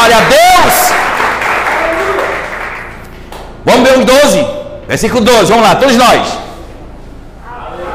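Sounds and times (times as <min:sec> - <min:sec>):
audience applause: 0:00.0 - 0:03.0
speech: 0:04.9 - 0:06.4.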